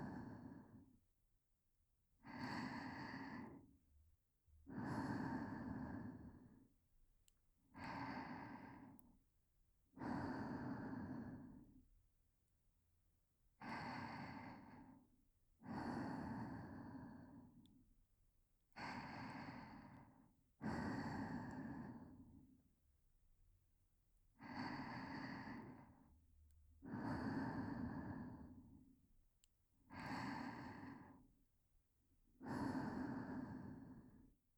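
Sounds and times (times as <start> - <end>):
whispered breathing: 0.0 - 1.0, 2.2 - 3.7, 4.6 - 6.7, 7.7 - 9.2, 10.0 - 11.8, 13.6 - 17.8, 18.8 - 22.6, 24.4 - 26.1, 26.8 - 29.0, 29.9 - 31.3, 32.4 - 34.4.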